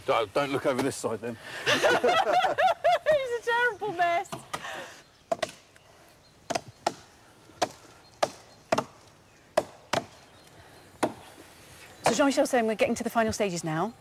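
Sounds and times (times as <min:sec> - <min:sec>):
speech: 0:00.1 - 0:02.8, 0:03.8 - 0:04.5, 0:12.1 - 0:13.9
laughter: 0:01.5 - 0:03.4
axe chopping into a tree trunk: 0:05.3 - 0:05.7, 0:06.5 - 0:10.2, 0:11.0 - 0:11.2.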